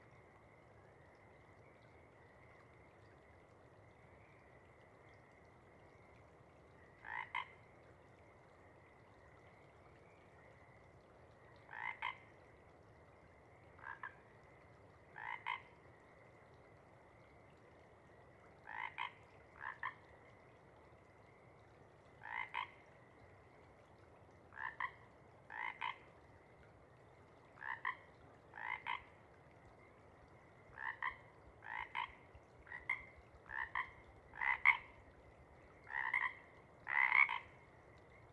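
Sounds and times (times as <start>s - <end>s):
faint background hiss: 0.0s - 38.3s
Pacific chorus frog two-part ribbit calls: 7.0s - 7.6s, 11.7s - 12.3s, 13.8s - 14.2s, 15.2s - 15.7s, 18.6s - 20.0s, 22.2s - 22.8s, 24.5s - 26.0s, 27.6s - 29.1s, 30.8s - 34.9s, 35.9s - 37.6s.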